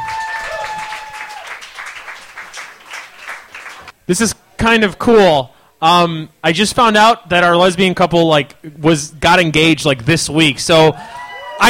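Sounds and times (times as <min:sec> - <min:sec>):
crowd clapping: 0:00.0 - 0:03.9
speech: 0:04.1 - 0:11.6.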